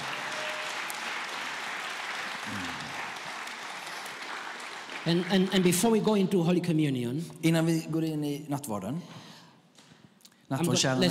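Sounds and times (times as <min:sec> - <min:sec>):
audience applause: 0:00.0 - 0:06.1
brief low vocal sound: 0:02.4 - 0:03.1
speech: 0:05.0 - 0:09.2, 0:10.5 - 0:11.0.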